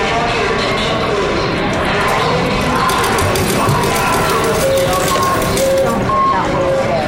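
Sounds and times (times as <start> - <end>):
crowd chatter in a busy public space: 0.0 - 7.0.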